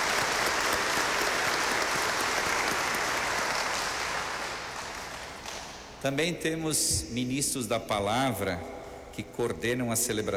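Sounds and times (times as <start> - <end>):
applause: 0.0 - 5.9
speech: 6.0 - 10.3.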